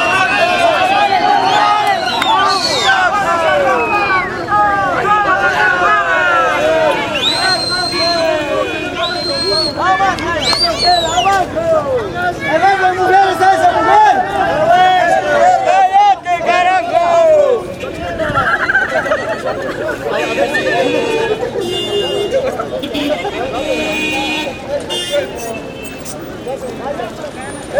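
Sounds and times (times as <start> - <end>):
angry protest crowd shouting in the street: 0.0 - 27.7
shrill whistle-like tones: 1.3 - 3.1, 7.1 - 9.8, 10.4 - 11.4
laughter: 17.8 - 23.9.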